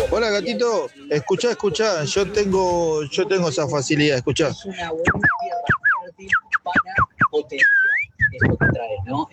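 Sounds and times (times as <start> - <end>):
speech: 0.2 - 5.3, 6.2 - 7.7, 8.4 - 9.3
person whistling imitation of female canary in heat: 5.1 - 8.8.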